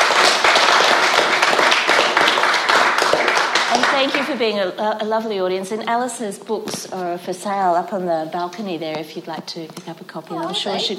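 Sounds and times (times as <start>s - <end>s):
audience applause for a speaker at a talk: 0.0s - 4.3s
speech: 4.0s - 10.9s.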